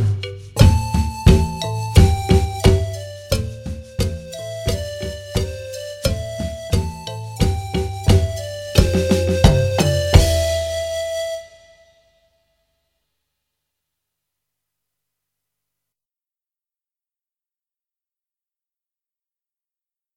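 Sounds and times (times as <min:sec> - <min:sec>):
drum kit: 0:00.0 - 0:11.5.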